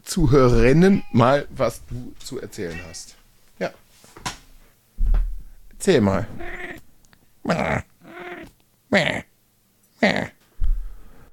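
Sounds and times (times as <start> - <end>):
speech: 0.1 - 4.4, 5.8 - 6.7, 7.4 - 7.9, 8.9 - 9.3, 10.0 - 10.4
cat meowing: 0.6 - 1.4, 2.6 - 3.2, 6.2 - 6.8, 8.0 - 8.5.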